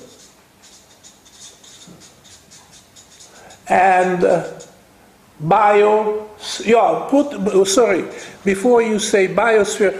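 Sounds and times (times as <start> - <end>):
soft scratchy strokes writing a word in a circle on a diagram: 0.0 - 4.8
speech: 3.7 - 4.6, 5.4 - 9.9.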